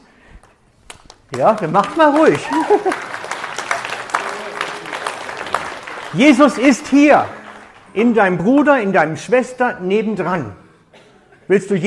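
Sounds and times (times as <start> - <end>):
audience clapping for their neighbors: 0.4 - 9.0
speech: 1.3 - 3.1, 6.1 - 10.6, 11.5 - 11.8
laughter: 2.4 - 5.6.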